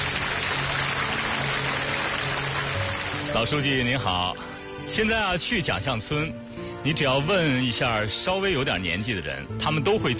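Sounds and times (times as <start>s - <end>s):
audience applause: 0.0s - 3.6s
speech: 3.3s - 10.1s.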